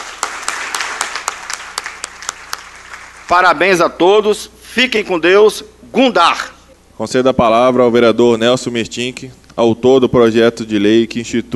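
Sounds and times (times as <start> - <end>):
warm round of applause from a crowd: 0.0 - 3.3
speech: 3.3 - 11.5.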